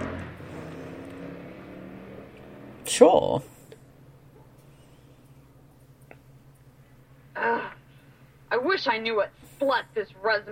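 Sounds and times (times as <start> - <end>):
motorcycle engine: 0.0 - 6.3
speech: 2.9 - 3.5, 8.9 - 10.5.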